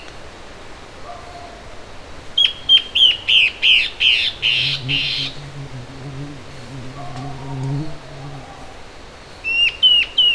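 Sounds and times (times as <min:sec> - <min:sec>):
bird calls: 0:00.9 - 0:10.3
low hum: 0:04.4 - 0:09.1.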